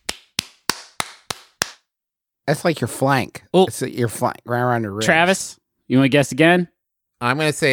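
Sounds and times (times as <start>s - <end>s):
foot slapping bare skin: 0.0s - 1.9s
speech: 2.5s - 7.7s.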